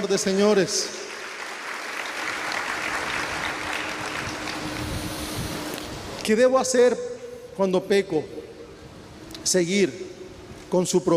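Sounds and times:
speech: 0.0s - 1.1s, 6.3s - 8.4s, 9.5s - 10.1s, 10.7s - 11.1s
audience applause: 0.9s - 5.8s.

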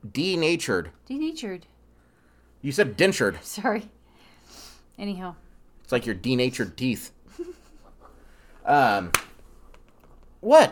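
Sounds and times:
speech: 0.1s - 1.7s, 2.6s - 7.6s, 8.7s - 9.3s, 10.4s - 10.6s
slap: 9.0s - 9.4s.

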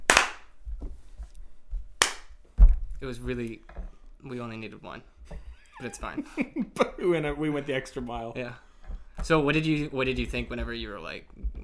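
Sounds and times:
hand clap to sync audio: 0.0s - 0.6s, 2.0s - 2.4s
speech: 3.0s - 11.4s.

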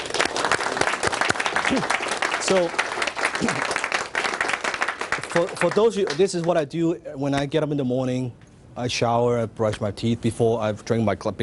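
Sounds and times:
room full of people applauding: 0.0s - 6.5s
speech: 1.7s - 2.8s, 3.4s - 3.8s, 5.3s - 11.4s.

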